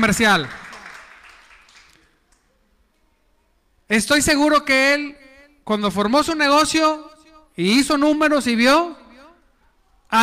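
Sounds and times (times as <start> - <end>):
speech: 0.0 - 0.6, 3.9 - 9.0
applause: 0.0 - 2.5.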